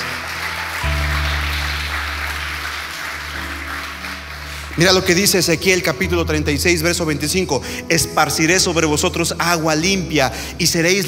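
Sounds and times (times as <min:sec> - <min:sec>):
audience applauding in a large room: 0:00.0 - 0:06.1
sustained low keyboard chords: 0:00.0 - 0:11.0
speech: 0:04.8 - 0:11.0.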